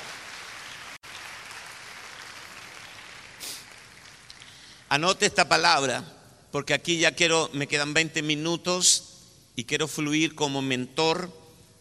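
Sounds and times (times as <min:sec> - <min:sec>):
audience applauding: 0:00.0 - 0:04.8
speech: 0:04.9 - 0:11.4.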